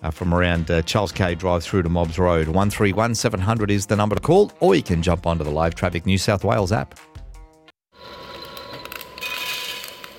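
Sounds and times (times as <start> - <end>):
speech: 0.0 - 7.1
coffee beans being roasted: 8.0 - 10.1.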